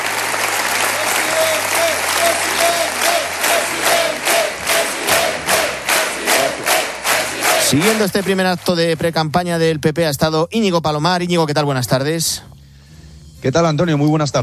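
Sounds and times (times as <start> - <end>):
crowd cheering at rally: 0.0 - 9.0
crowd clapping in a steady rhythm: 0.0 - 9.7
voices chanting a repeated word in unison: 2.1 - 8.0
speech: 7.7 - 12.6, 13.4 - 14.4.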